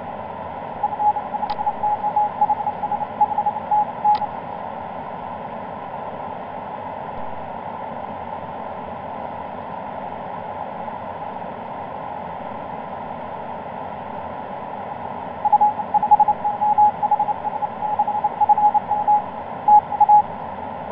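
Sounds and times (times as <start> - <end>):
CW Morse code tones on the 17m band: 0.8 - 4.3, 15.5 - 20.3.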